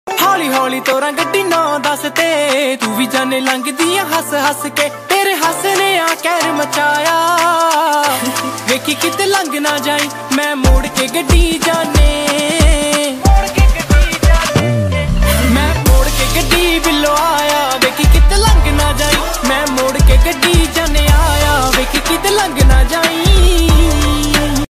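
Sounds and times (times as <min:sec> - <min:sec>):
Punjabi ringtone music: 0:00.1 - 0:24.7.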